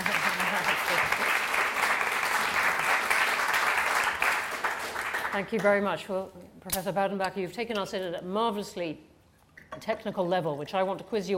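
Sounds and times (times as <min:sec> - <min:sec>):
audience applause: 0:00.0 - 0:05.4
speech: 0:05.4 - 0:09.1, 0:09.8 - 0:11.3.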